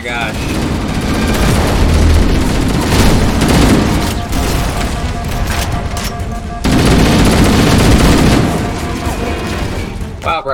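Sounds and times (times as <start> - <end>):
heavy gunfire including a rifle: 0.0 - 10.2.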